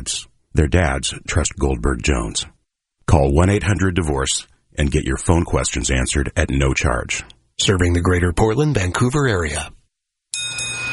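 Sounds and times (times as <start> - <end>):
speech: 0.0 - 9.8
driveway bell ding as a car rolls into an oil change shop: 10.4 - 10.9.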